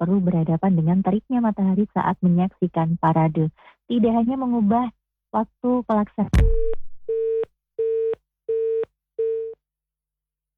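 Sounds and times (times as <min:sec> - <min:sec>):
speech: 0:00.0 - 0:07.3
telephone busy signal after dropped call: 0:07.1 - 0:09.6.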